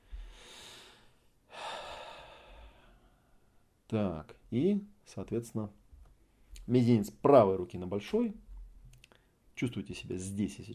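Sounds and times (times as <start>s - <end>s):
person exhaling during a guided breathing exercise: 0.0s - 3.4s
speech: 3.9s - 5.8s, 6.6s - 8.4s, 9.6s - 10.7s.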